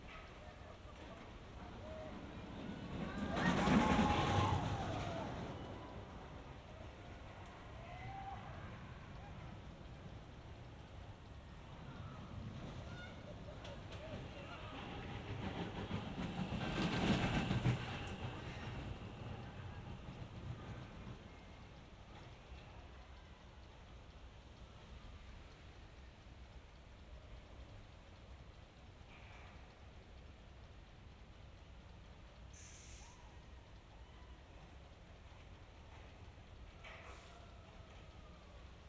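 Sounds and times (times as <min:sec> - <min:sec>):
roller coaster: 0:00.0 - 0:23.7, 0:31.9 - 0:38.8.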